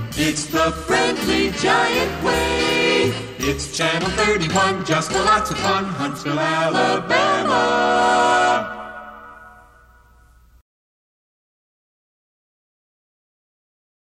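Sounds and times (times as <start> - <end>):
jingle: 0.2 - 10.2.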